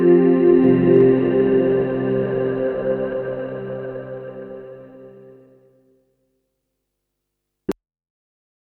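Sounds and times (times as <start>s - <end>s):
noisy formant filter synth pad: 0.0s - 5.7s.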